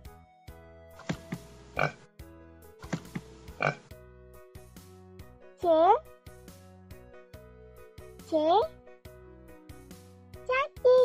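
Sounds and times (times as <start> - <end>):
pig grunting and snorting: 1.0 - 2.0, 2.8 - 3.9
speech: 1.8 - 2.0, 8.3 - 8.7.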